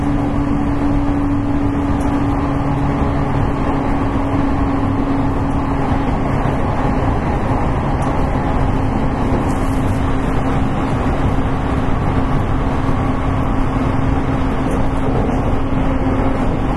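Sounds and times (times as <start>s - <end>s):
Class 813 electric train running on a Kagoshima Line rapid service: 0.0s - 16.7s.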